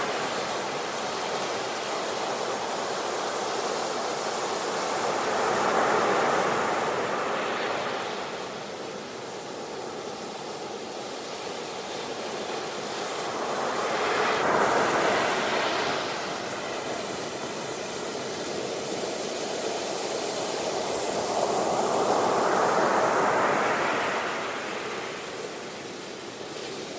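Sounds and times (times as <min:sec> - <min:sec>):
ocean waves: 0:00.0 - 0:26.9.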